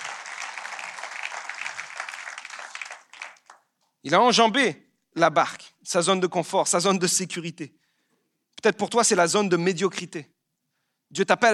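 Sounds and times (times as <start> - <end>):
audience applause: 0.0 - 3.7
speech: 4.0 - 7.8, 8.6 - 10.4, 11.1 - 11.5.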